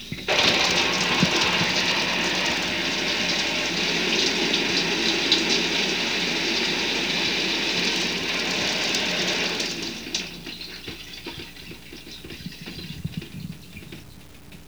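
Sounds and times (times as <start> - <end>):
shower running: 0.0 - 14.2.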